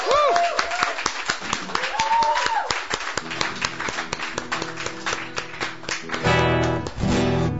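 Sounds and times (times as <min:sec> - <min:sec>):
rising whoops from audience: 0:00.0 - 0:01.1, 0:01.7 - 0:02.9
audience applause: 0:00.0 - 0:07.5.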